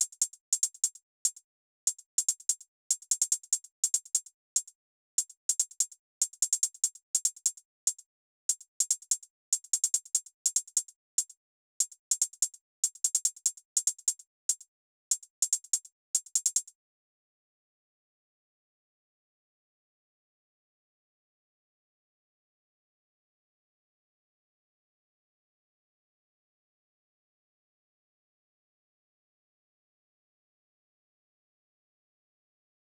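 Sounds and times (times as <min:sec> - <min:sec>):
hi-hat: 0:00.0 - 0:16.7.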